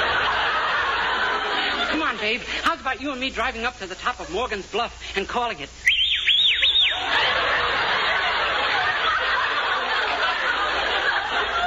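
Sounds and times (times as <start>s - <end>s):
laughter: 0.0s - 2.6s, 6.9s - 11.6s
speech: 2.2s - 5.9s
man whistling at a woman: 5.8s - 7.0s.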